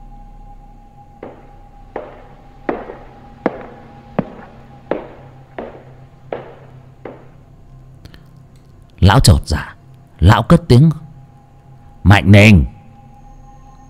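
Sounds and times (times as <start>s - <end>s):
echoing footsteps in wooden house: 1.2s - 7.6s
speech: 9.1s - 11.0s, 12.1s - 12.7s.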